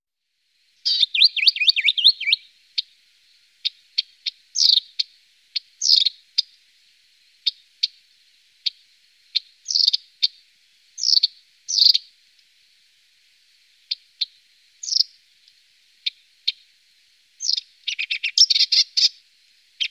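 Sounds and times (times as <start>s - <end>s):
marsh warbler singing: 0.8s - 2.9s, 3.6s - 6.5s, 8.6s - 10.4s, 11.0s - 12.1s, 13.9s - 15.2s, 17.4s - 19.2s.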